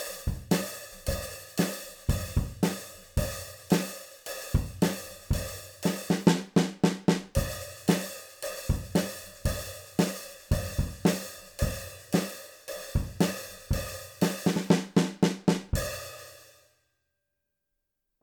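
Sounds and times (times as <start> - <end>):
hi-hat of a mahogany drum kit: 0.0 - 6.4, 7.2 - 16.4
snare drum of a mahogany drum kit: 0.0 - 16.3
bass drum of a mahogany drum kit: 0.3 - 0.6, 2.1 - 3.4, 4.5 - 5.5, 8.7 - 9.9, 10.5 - 12.2, 13.0 - 16.0.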